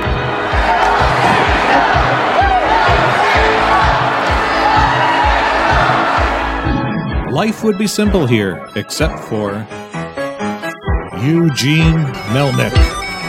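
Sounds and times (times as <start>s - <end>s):
hockey fans cheering in arena: 0.0s - 7.5s
speech: 7.4s - 9.8s, 11.2s - 13.0s.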